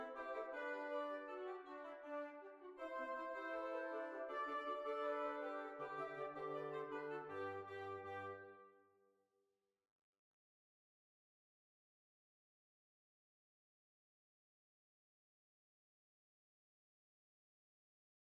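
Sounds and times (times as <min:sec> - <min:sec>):
hornpipe tune: 0:00.0 - 0:08.7.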